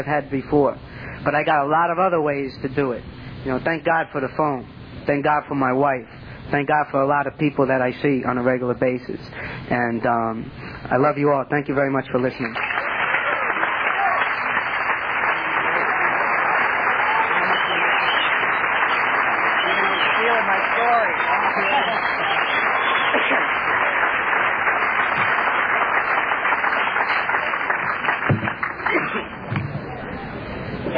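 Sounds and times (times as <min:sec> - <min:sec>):
speech: 0:00.0 - 0:12.8
audience applause: 0:12.4 - 0:29.5.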